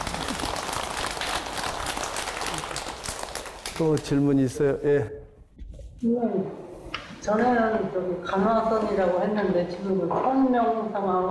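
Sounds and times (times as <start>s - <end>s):
audience applause: 0.0s - 4.5s
speech: 3.8s - 5.2s, 6.0s - 6.6s, 7.2s - 11.2s.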